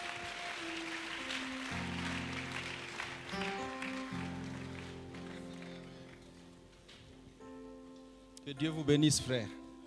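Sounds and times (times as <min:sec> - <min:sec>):
church congregation clapping for newly baptised brothers: 0:00.0 - 0:07.2
keyboard chords: 0:00.0 - 0:09.8
speech: 0:08.5 - 0:09.6.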